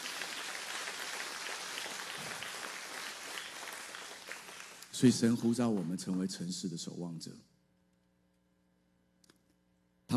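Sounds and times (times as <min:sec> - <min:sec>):
applause: 0:00.0 - 0:06.4
speech: 0:05.0 - 0:07.6.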